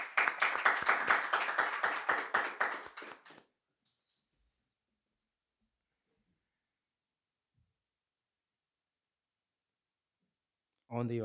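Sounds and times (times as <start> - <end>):
audience clapping hands: 0.0 - 3.5.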